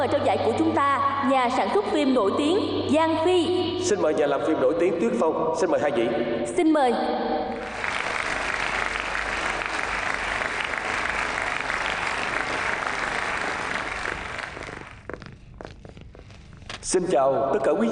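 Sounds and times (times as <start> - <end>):
speech: 0.0 - 7.8, 16.9 - 17.9
award ceremony audience applause welcoming presenters: 7.6 - 15.1.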